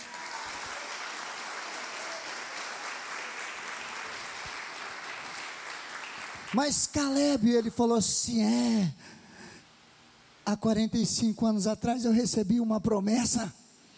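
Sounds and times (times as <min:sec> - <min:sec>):
audience applause: 0:00.0 - 0:06.7
speech: 0:06.5 - 0:09.2, 0:10.5 - 0:13.6.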